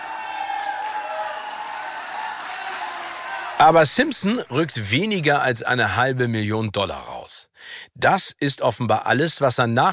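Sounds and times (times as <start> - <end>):
crowd cheering in a courtroom: 0.0 - 4.7
speech: 3.6 - 9.9.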